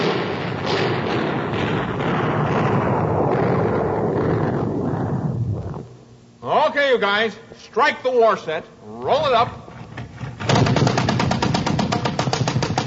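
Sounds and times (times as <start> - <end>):
gunfire battle sound effect: 0.0 - 5.1, 10.4 - 12.8
booming explosions: 0.0 - 5.9
speech: 7.0 - 9.6.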